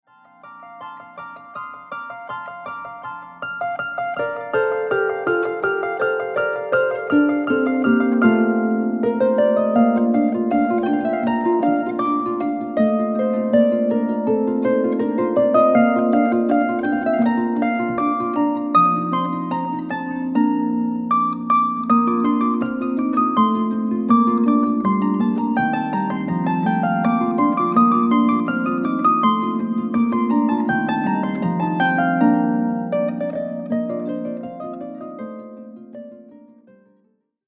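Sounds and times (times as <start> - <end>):
harp sonata in B-flat major: 0.0 - 37.0.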